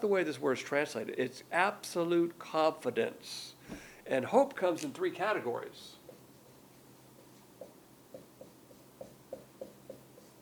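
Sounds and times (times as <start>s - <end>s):
speech: 0.0s - 6.0s
writing taps on a board during a lesson: 6.0s - 6.2s, 7.2s - 10.4s.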